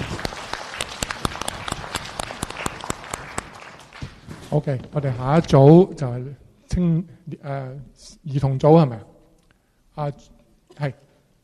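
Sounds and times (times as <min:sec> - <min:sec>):
audience applause: 0:00.0 - 0:04.3
speech: 0:04.5 - 0:09.1, 0:10.0 - 0:11.0.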